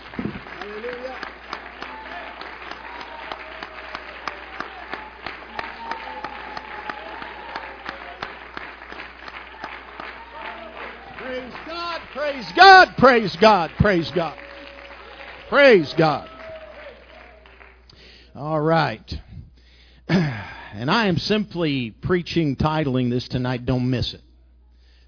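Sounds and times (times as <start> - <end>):
audience clapping: 0.0 - 18.2
speech: 12.3 - 14.4, 15.5 - 16.3, 18.4 - 19.2, 20.8 - 24.3.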